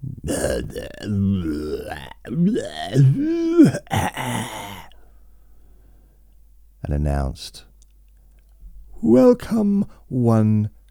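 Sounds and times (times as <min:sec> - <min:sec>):
man theatrically clearing his throat: 0:00.0 - 0:04.9
speech: 0:00.3 - 0:04.8, 0:06.9 - 0:07.7, 0:09.0 - 0:10.8.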